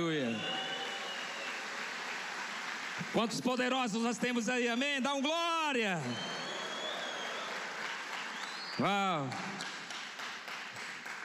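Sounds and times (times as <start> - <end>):
speech: 0.0 - 0.6, 3.0 - 6.4, 8.8 - 9.7
audience applause: 0.0 - 3.6, 6.0 - 11.2.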